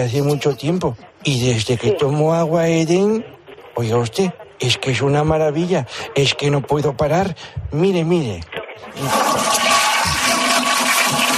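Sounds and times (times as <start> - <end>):
speech: 0.0 - 9.7
toilet flushing: 8.9 - 11.3.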